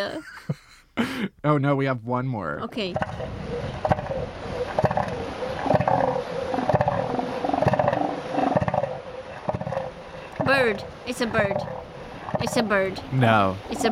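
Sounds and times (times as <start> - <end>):
speech: 0.0 - 3.3, 10.6 - 11.8, 12.4 - 13.9
elephant seal vocalization: 2.7 - 13.9.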